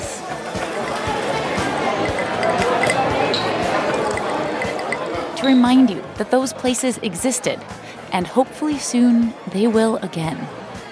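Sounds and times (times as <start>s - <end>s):
cocktail shaker shaking: 0.6s - 5.2s
speech: 5.4s - 10.6s.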